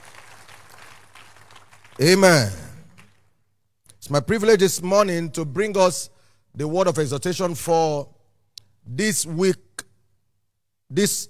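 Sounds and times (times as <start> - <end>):
audience clapping: 0.0 - 3.2
speech: 2.0 - 2.6, 4.1 - 8.2, 8.8 - 9.6, 10.9 - 11.2.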